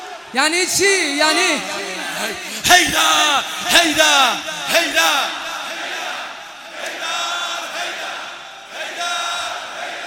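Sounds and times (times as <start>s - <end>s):
audience at a religious talk cheering and shouting: 0.0s - 10.0s
speech: 0.3s - 5.4s.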